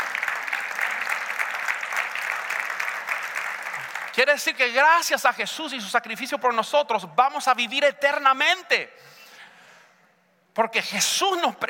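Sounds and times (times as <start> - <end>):
audience applause: 0.0 - 4.2
speech: 4.2 - 9.2, 10.6 - 11.6.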